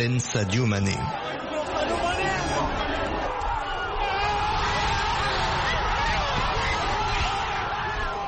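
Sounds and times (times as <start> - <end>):
speech: 0.0 - 1.8
crowd roaring after winning penalty: 0.9 - 8.2.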